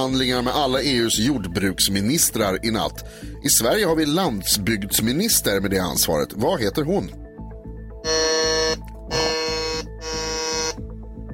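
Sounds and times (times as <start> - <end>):
speech: 0.0 - 7.2
quiz buzzer pressed by contestants: 8.0 - 10.9.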